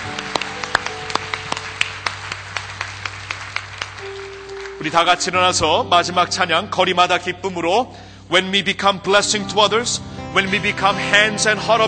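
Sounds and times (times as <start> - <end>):
church congregation clapping in praise to God: 0.0 - 5.3
speech: 4.8 - 11.8.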